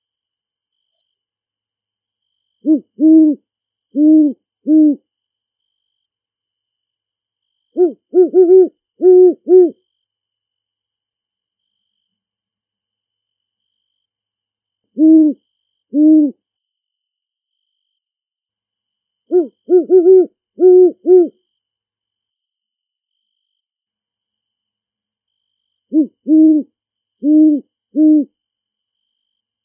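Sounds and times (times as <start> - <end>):
great horned owl hooting in a big forest: 2.6 - 5.0, 7.7 - 9.8, 14.9 - 16.4, 19.3 - 21.4, 25.9 - 28.4.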